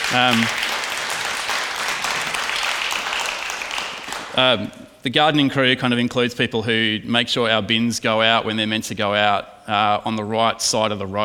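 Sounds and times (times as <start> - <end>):
audience applause: 0.0 - 4.6
speech: 0.1 - 0.6, 4.4 - 11.2.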